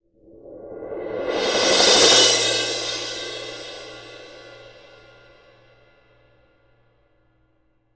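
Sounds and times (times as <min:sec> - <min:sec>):
percussion cymbal: 0:00.8 - 0:05.9.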